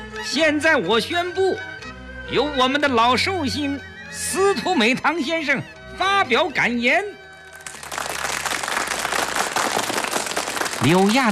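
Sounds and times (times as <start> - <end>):
speech: 0.2 - 1.7, 2.3 - 7.2, 10.8 - 11.3
thunderous applause from the hall: 7.8 - 11.3.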